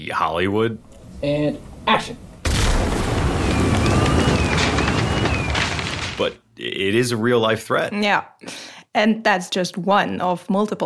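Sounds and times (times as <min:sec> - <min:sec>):
speech: 0:00.1 - 0:02.3, 0:06.2 - 0:10.8
explosion: 0:02.4 - 0:06.4.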